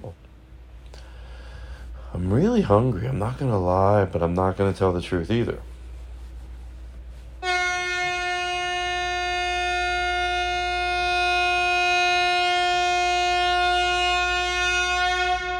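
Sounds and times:
speech: 2.2 - 5.7
sustained horn blast: 7.4 - 15.5.

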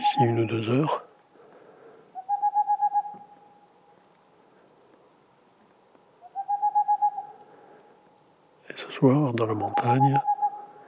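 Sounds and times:
boreal owl hooting: 0.0 - 1.1, 2.1 - 3.8, 6.2 - 8.0, 9.4 - 10.8
speech: 0.2 - 1.1, 9.0 - 10.3.

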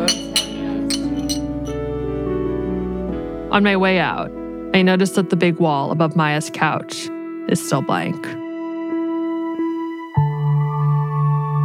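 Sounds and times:
shot glasses clinking in a toast: 0.0 - 1.8
steady music: 0.0 - 11.6
speech: 3.5 - 8.4.

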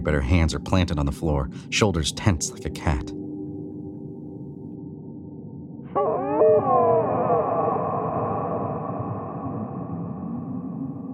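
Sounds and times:
speech: 0.0 - 3.2
eerie otherworldly moaning: 5.8 - 11.1.

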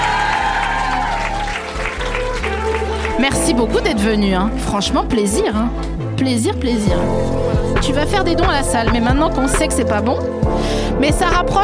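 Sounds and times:
audience applause: 0.0 - 3.5
speech: 3.2 - 11.6.

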